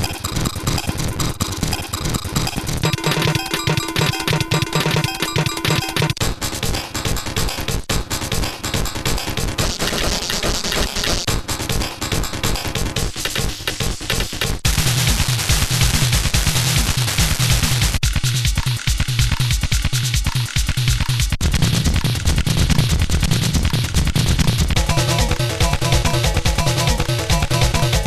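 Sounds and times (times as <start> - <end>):
XR10 drum machine drums: 0.0 - 28.0.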